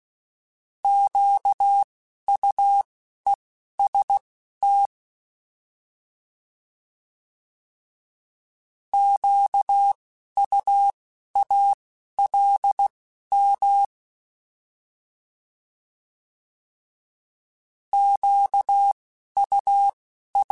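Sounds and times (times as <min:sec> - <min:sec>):
Morse code CW code groups: 0:00.9 - 0:02.8, 0:03.8 - 0:04.9, 0:09.0 - 0:13.9, 0:18.0 - 0:20.5.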